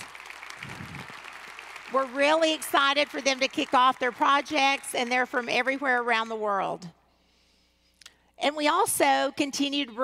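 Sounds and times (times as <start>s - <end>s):
audience applause: 0.0s - 4.8s
speech: 1.9s - 7.0s, 8.4s - 10.0s.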